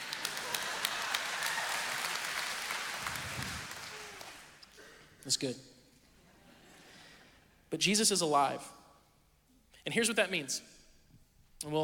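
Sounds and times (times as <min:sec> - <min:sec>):
slow wave of audience clapping: 0:00.0 - 0:04.8
speech: 0:05.2 - 0:05.7, 0:07.7 - 0:08.8, 0:09.8 - 0:10.8, 0:11.6 - 0:11.8.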